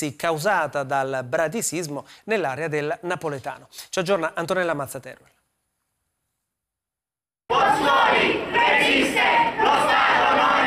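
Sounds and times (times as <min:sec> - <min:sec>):
speech: 0:00.0 - 0:05.4
protesters shouting slogans in unison in the street: 0:07.5 - 0:10.6.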